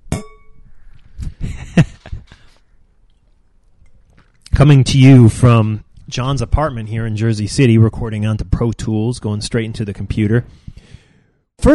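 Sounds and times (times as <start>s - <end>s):
glasses clinking in a toast: 0.1s - 0.7s
speech: 4.6s - 11.0s, 11.6s - 11.7s.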